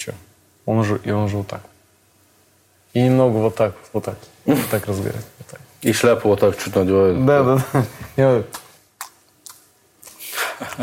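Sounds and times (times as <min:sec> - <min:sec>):
speech: 0:00.0 - 0:01.7, 0:02.9 - 0:08.6
wet lip smacks: 0:08.5 - 0:10.4
imitated chewing noises: 0:08.5 - 0:10.8.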